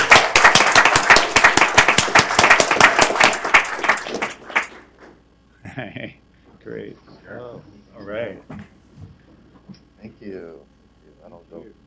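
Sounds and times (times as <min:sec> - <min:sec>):
audience applause for the Timbers: 0:00.0 - 0:05.2
speech: 0:06.0 - 0:11.8.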